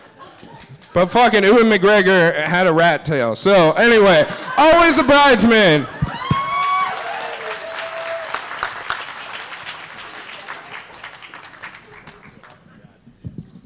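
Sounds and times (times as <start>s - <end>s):
laughter: 0.0s - 1.0s, 3.9s - 6.3s
speech: 1.0s - 6.0s
audience applause: 5.7s - 12.7s.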